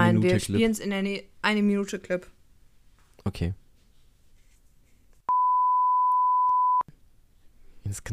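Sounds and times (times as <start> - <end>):
speech: 0.1 - 2.4, 3.2 - 3.6, 7.9 - 8.1
censor bleep tone: 5.3 - 6.8.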